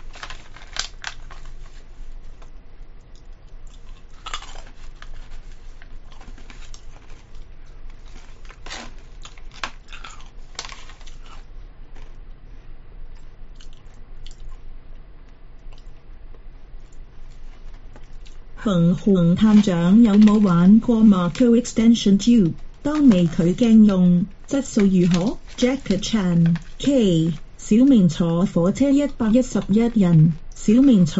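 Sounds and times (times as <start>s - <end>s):
person chewing food close to microphone: 3.1s - 12.2s, 13.1s - 15.0s, 15.6s - 18.4s
speech: 18.6s - 31.1s.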